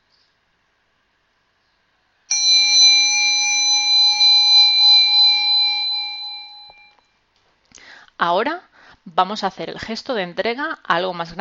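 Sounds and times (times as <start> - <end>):
meditation bell ringing: 2.3 - 7.0
speech: 8.2 - 11.4.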